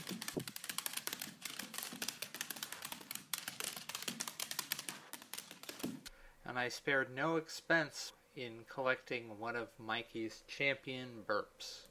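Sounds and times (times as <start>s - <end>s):
dachshund paws tapping on a hard floor: 0.0s - 6.1s
speech: 6.5s - 11.8s.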